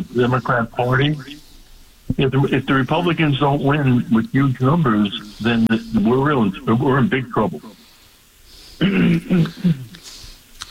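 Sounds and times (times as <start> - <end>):
faint low noise: 0.0 - 10.6
speech: 0.2 - 1.4, 2.1 - 7.8, 8.8 - 9.8
throat clearing: 8.8 - 10.0.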